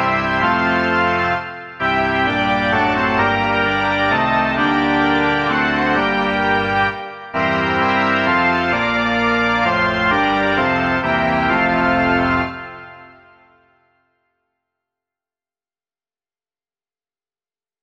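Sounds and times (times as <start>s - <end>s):
organ: 0.0s - 13.8s.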